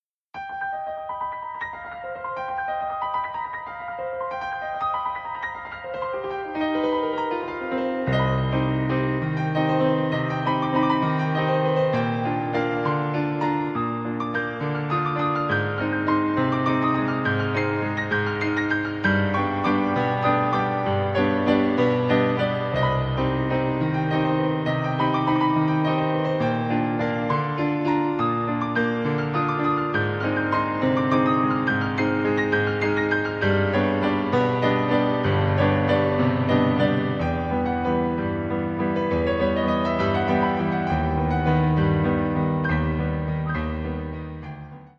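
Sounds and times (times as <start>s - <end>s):
piano cover: 0.4s - 44.9s.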